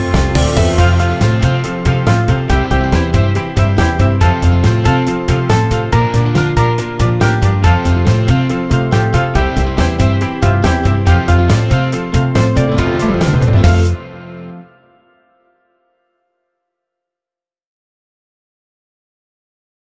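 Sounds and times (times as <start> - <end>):
backing music: 0.0 - 15.2.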